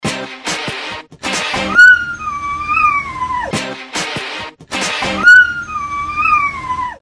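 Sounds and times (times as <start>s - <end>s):
dog howling ringtone: 1.7s - 3.6s, 5.2s - 7.0s.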